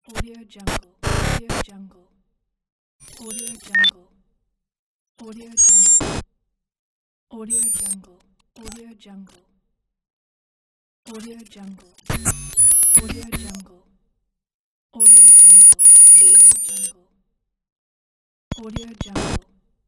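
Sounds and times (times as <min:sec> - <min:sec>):
digital glitch: 0:00.7 - 0:01.6, 0:03.0 - 0:03.9, 0:05.6 - 0:06.2, 0:07.5 - 0:08.0, 0:12.1 - 0:13.6, 0:15.0 - 0:16.9, 0:18.5 - 0:19.4.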